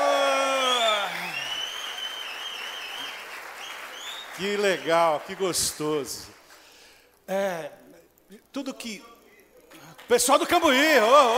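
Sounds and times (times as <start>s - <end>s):
audience applause: 0.0s - 6.5s
speech: 4.4s - 6.4s, 7.3s - 9.1s, 10.1s - 11.3s.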